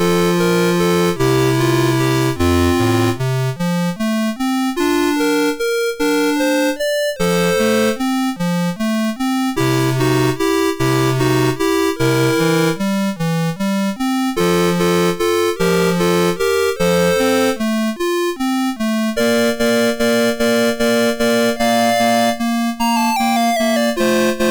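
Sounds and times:
lullaby on MOS6581R3 sound chip: 0:00.0 - 0:24.4.

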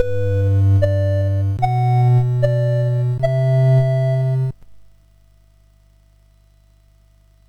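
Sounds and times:
MOS6581R4 SID chip music: 0:00.0 - 0:04.6.

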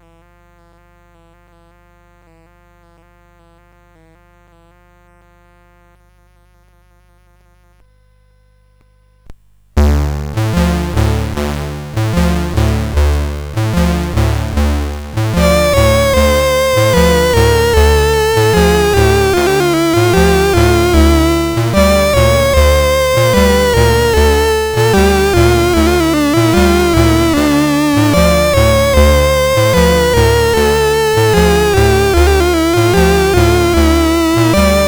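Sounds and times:
habanera on CSG8580R5 sound chip: 0:09.8 - 0:34.8.

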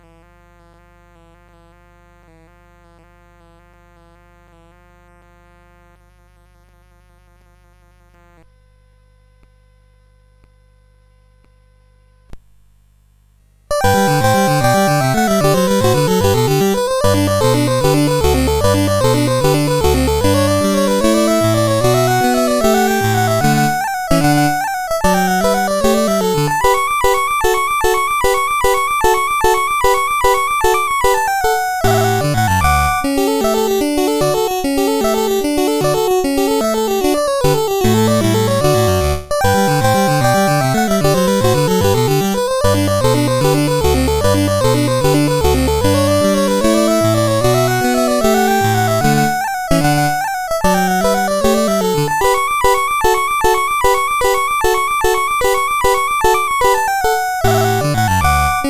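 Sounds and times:
classical piece in G major: 0:13.7 - 0:58.6.

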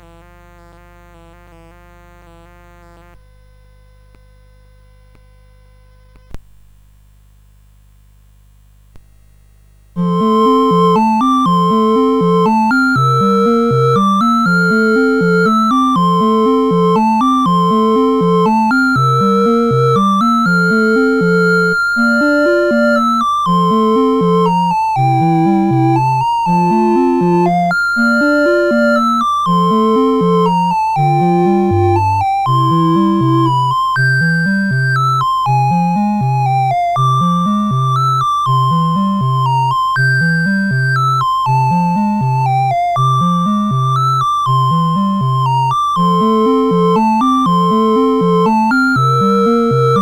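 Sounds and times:
CSG 8580 sound chip: 0:10.0 - 0:49.9.

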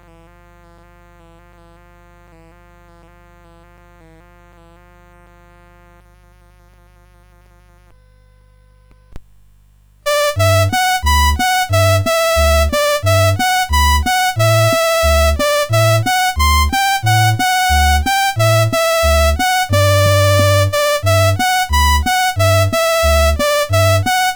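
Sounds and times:
CSG 8580 sound chip: 0:10.1 - 0:24.3.

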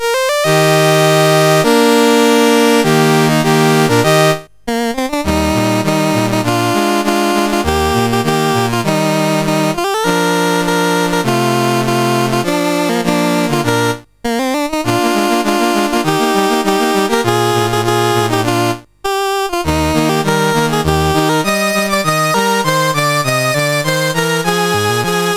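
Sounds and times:
CSG8580R5 chiptune national anthem: 0:00.0 - 0:25.3.

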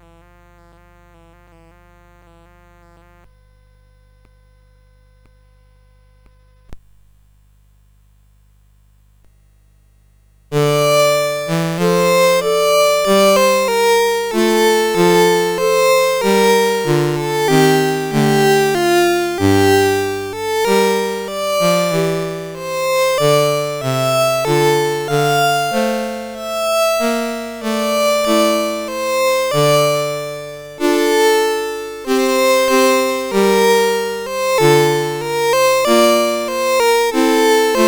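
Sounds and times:
CSG 8580 sound chip: 0:10.5 - 0:37.8.

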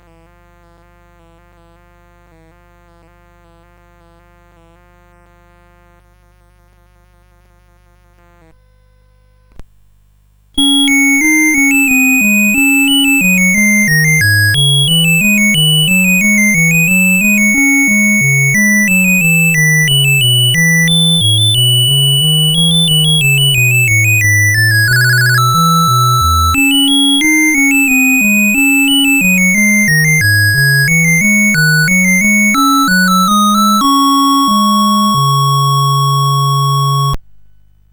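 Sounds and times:
minuet: 0:10.6 - 0:37.2.

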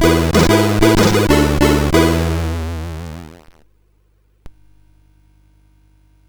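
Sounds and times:
SID CSG8580R5 chip music: 0:00.0 - 0:03.4.

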